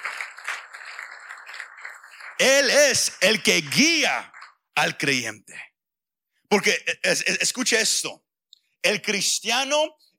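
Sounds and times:
audience applause: 0.0s - 4.6s
speech: 2.4s - 5.7s, 6.5s - 8.2s, 8.8s - 10.0s.

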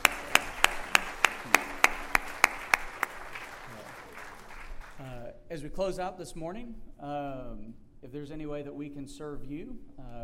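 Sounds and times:
audience applause: 0.0s - 5.1s
speech: 5.6s - 10.2s.

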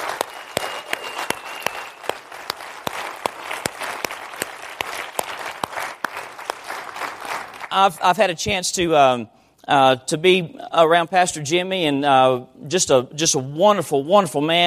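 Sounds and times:
audience applause: 0.0s - 8.0s
speech: 7.8s - 14.6s.

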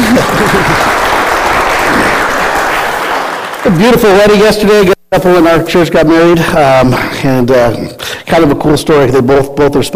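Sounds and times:
laughter: 0.0s - 1.2s
audience applause: 0.0s - 4.4s
speech: 3.6s - 9.9s.

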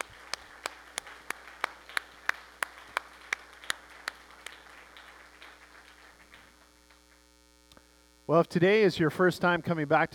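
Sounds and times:
audience applauding: 0.0s - 7.0s
speech: 8.3s - 10.1s.

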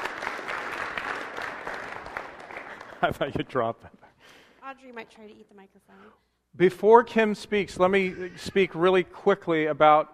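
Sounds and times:
audience applause: 0.0s - 3.7s
speech: 3.0s - 4.0s, 4.7s - 10.1s.

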